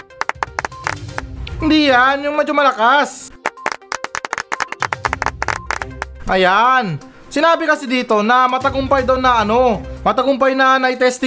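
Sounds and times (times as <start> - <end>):
applause: 0.0 - 1.2, 3.4 - 6.1
speech: 1.6 - 3.3, 6.3 - 11.2.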